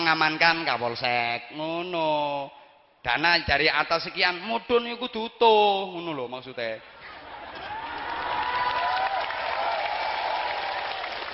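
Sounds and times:
speech: 0.1s - 6.9s
audience applause at a community gathering: 7.2s - 11.3s.

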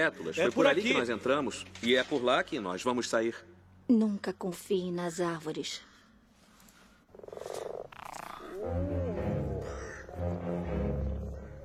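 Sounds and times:
speech: 0.0s - 5.9s
toad croaking: 7.1s - 10.2s.

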